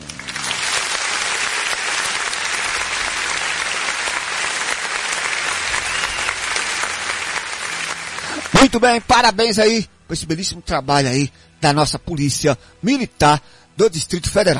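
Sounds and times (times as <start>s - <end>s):
applause sound effect: 0.0s - 9.1s
speech: 8.6s - 14.5s.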